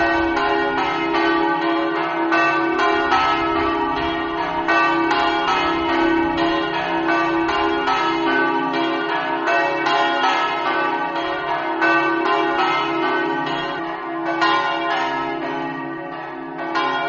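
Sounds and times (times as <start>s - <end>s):
bells ringing: 0.0s - 17.0s.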